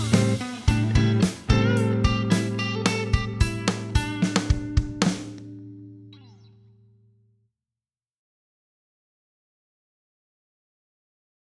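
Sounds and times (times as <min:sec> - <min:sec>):
rock music: 0:00.0 - 0:05.6.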